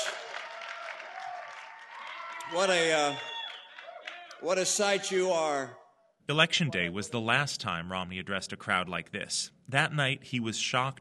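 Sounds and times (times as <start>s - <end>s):
standing audience cheering and applauding: 0.0s - 4.9s
speech: 2.5s - 3.3s, 4.4s - 11.0s.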